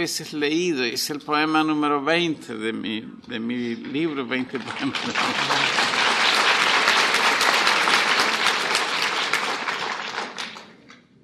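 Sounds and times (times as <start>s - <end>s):
speech: 0.0s - 6.0s
audience applause: 4.6s - 10.9s.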